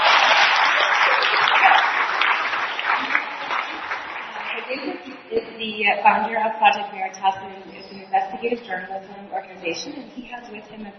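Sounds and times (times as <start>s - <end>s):
audience applause: 0.0s - 4.8s
speech: 5.8s - 10.9s.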